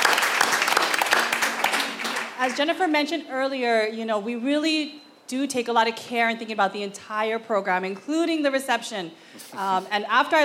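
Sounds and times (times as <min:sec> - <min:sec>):
audience applause: 0:00.0 - 0:02.4
speech: 0:02.4 - 0:10.4.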